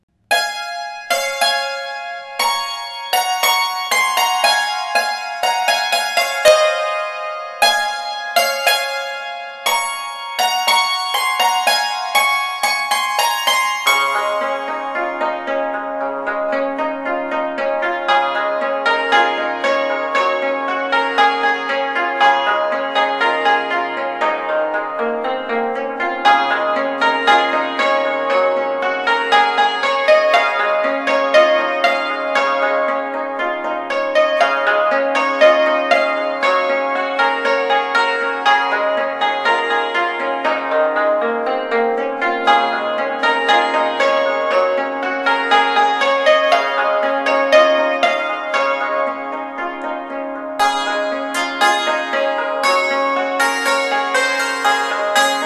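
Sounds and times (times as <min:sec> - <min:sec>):
hymns and medleys on Chinese hammered dulcimer: 0:00.3 - 0:55.4.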